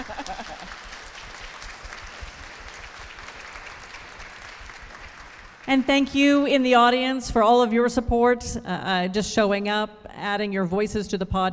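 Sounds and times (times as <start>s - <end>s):
laughter: 0.0s - 0.9s
audience applause: 0.0s - 5.9s
speech: 5.7s - 11.5s.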